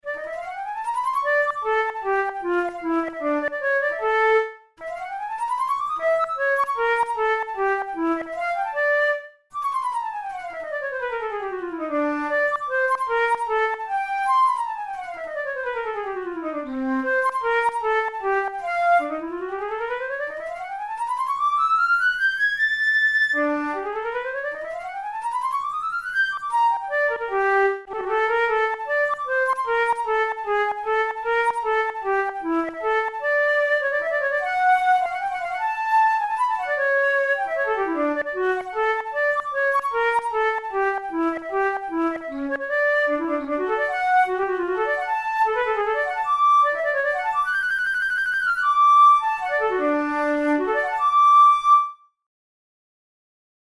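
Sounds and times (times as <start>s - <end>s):
studies for the Boehm flute: 0.0s - 52.2s.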